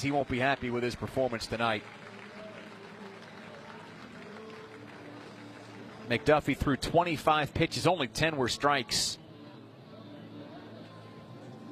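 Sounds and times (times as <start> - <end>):
speech: 0.0 - 2.1, 6.1 - 9.2
ballpark crowd applause: 0.0 - 7.0.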